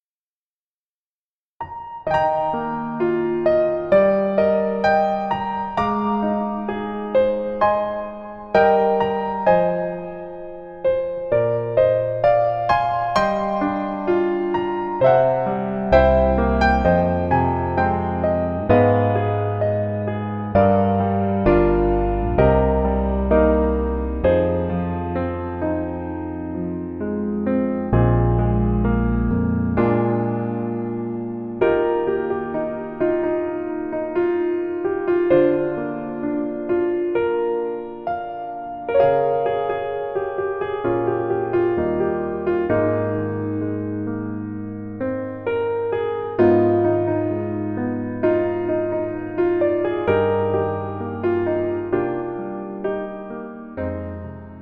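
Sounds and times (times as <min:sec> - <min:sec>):
piano version melody backing track: 0:01.6 - 0:54.6.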